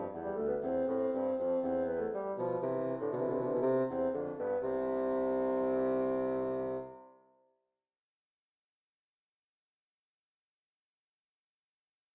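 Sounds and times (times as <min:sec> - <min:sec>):
two bassoons playing a duet: 0:00.0 - 0:07.0.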